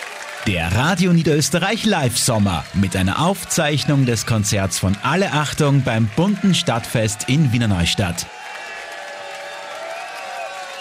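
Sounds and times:
audience screaming and cheering for encore: 0.0 - 10.7
speech: 0.5 - 8.4.

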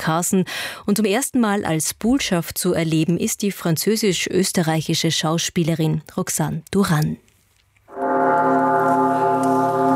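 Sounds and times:
speech: 0.0 - 7.2
church bells ringing: 7.9 - 9.9.

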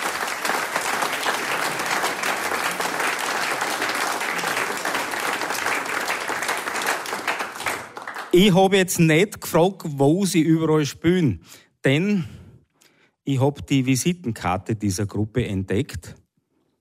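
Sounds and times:
audience applause: 0.0 - 8.4
speech: 8.4 - 12.4, 13.3 - 16.2.

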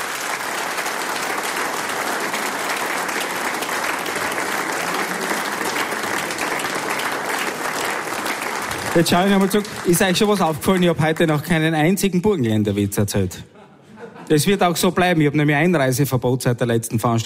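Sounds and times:
large audience applauding: 0.0 - 11.8
speech: 9.0 - 13.5, 14.3 - 17.2
laughter: 13.4 - 14.8.

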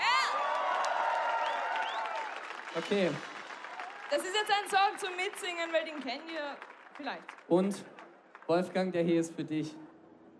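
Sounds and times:
concert audience cheering and shouting: 0.0 - 4.8
concert audience applause: 0.0 - 9.2
speech: 2.8 - 3.3, 4.1 - 7.9, 8.5 - 9.8.

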